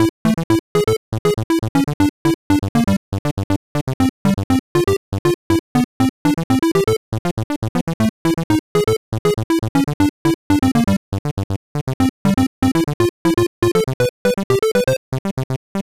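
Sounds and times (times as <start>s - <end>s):
music: 0.0s - 15.9s.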